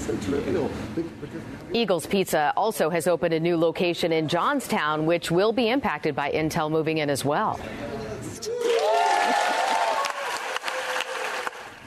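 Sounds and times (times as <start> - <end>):
speech: 0.1 - 9.5
applause on the Senate floor: 8.6 - 11.8.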